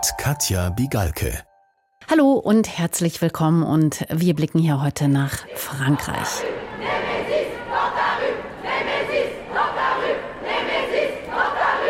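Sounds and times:
speech: 0.0 - 1.5, 2.1 - 6.9
crowd of demonstrators at a protest in France chanting a feminist collective's slogan: 5.2 - 11.8.

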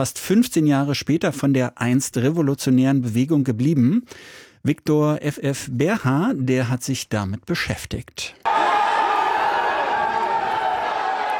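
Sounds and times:
speech: 0.0 - 8.5
crowd cheering outside a courthouse in Los Angeles: 8.4 - 11.3.

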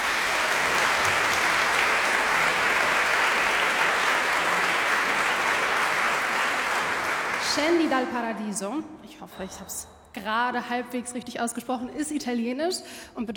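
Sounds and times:
audience applause after choir performance: 0.0 - 8.1
speech: 7.6 - 13.3.

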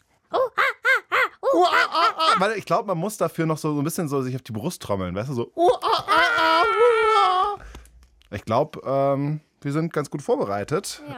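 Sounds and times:
person imitating a monkey call with vocal hoots: 0.3 - 2.5, 5.6 - 7.6
speech: 1.5 - 7.1, 8.3 - 11.1.

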